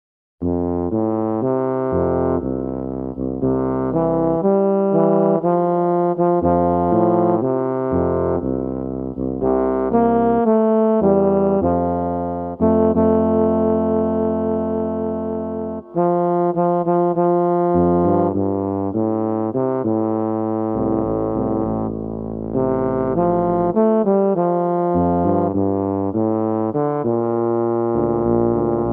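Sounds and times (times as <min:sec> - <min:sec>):
small tuba duet in F: 0:00.4 - 0:28.9.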